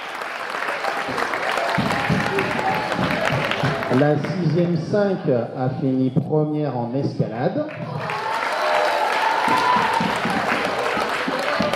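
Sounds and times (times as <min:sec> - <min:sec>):
audience applauding: 0:00.0 - 0:04.8, 0:07.7 - 0:11.7
speech: 0:01.1 - 0:01.4, 0:03.9 - 0:08.0.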